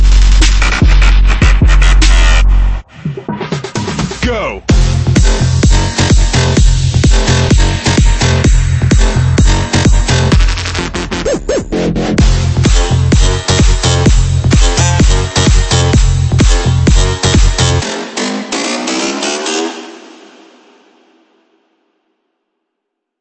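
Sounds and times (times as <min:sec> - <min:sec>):
bass: 0:00.0 - 0:18.2.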